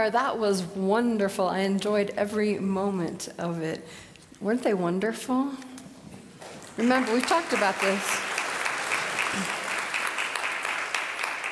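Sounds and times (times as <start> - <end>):
speech: 0.0 - 5.7, 6.8 - 8.3
audience applause after choir performance: 6.4 - 11.5.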